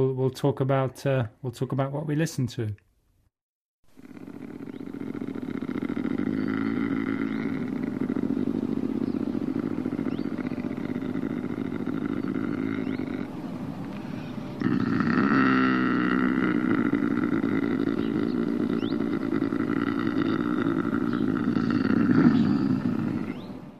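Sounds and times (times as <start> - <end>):
speech: 0.0 - 2.8
lynx mating call yowl: 4.2 - 13.4, 14.6 - 23.6.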